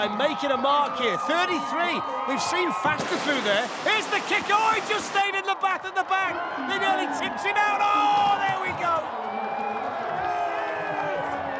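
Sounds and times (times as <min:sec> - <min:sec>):
speech: 0:00.0 - 0:09.3
spectators cheering a bath race run in Santon: 0:00.0 - 0:11.5.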